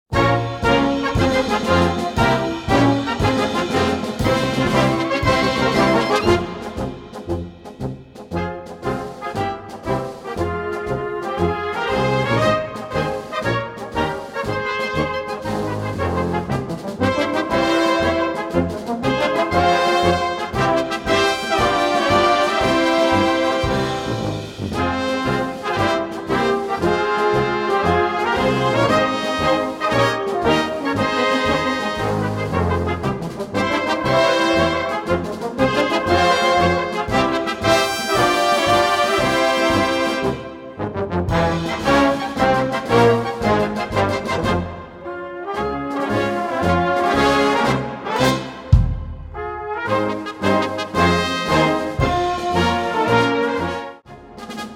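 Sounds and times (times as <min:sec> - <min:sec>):
march music: 0:00.1 - 0:54.7.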